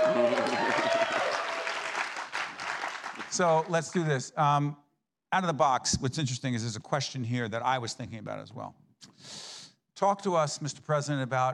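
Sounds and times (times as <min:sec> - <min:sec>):
voices cheering and calling out: 0:00.0 - 0:02.0
crowd clapping: 0:00.0 - 0:04.1
speech: 0:03.4 - 0:09.4, 0:10.0 - 0:11.5.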